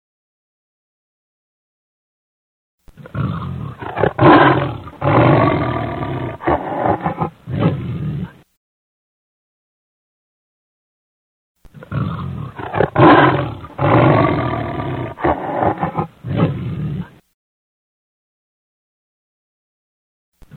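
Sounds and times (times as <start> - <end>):
lion roaring: 2.9 - 8.4, 11.7 - 17.2.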